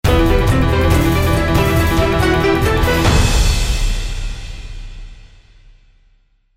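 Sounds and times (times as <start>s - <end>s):
temple fight victory music: 0.0s - 5.3s.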